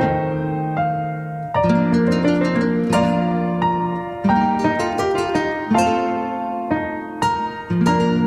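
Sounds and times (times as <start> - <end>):
piano piece in B flat major: 0.0 - 8.2.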